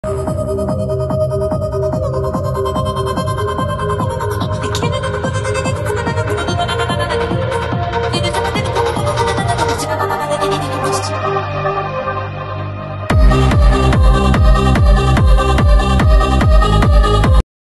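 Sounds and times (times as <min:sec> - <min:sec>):
techno remix: 0:00.0 - 0:17.4.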